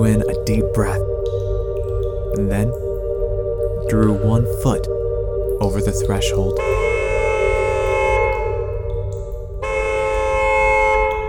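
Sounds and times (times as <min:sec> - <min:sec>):
speech: 0:00.0 - 0:01.2, 0:02.3 - 0:02.8, 0:03.9 - 0:05.0, 0:05.6 - 0:06.9
low rumbling hum: 0:00.0 - 0:11.2
car horn blaring in one long blast: 0:06.6 - 0:08.7, 0:09.6 - 0:11.2.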